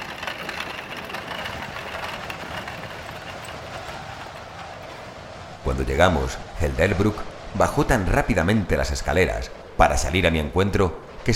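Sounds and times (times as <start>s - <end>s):
horse-drawn carriage rumbling and rattling: 0.0s - 5.7s
horse hooves clip-clopping: 0.0s - 5.9s
speech: 5.7s - 11.3s.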